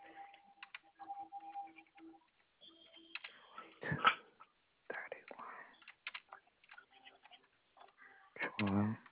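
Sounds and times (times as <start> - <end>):
typing on a keyboard: 0.3 - 3.4, 5.7 - 9.1.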